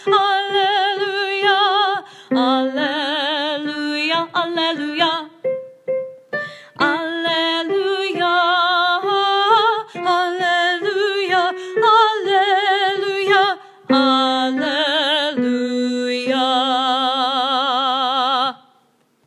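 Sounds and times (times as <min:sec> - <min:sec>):
mezzo soprano singing at a wedding: 0:00.0 - 0:18.7.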